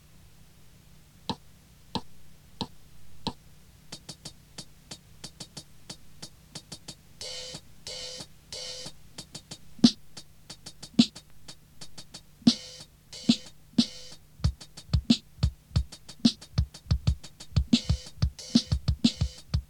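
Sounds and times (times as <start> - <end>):
music beat: 4.0 - 19.6.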